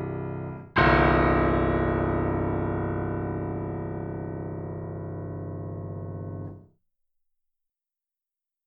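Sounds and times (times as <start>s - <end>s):
piano bass test: 0.0s - 6.6s.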